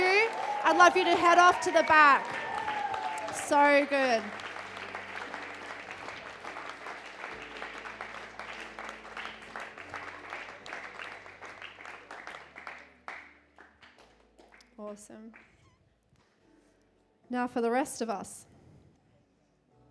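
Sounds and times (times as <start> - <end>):
audience cheering: 0.0 - 8.8
audience applauding: 0.0 - 15.6
speech: 0.7 - 2.4, 3.5 - 4.4, 14.9 - 15.5, 17.3 - 18.5.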